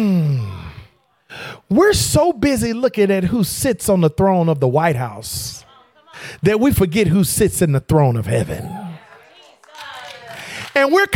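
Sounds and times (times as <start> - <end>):
speech: 1.7 - 8.8, 10.8 - 11.1
murmuring voices and crowd noise: 8.4 - 9.3
audience applauding: 8.6 - 11.1.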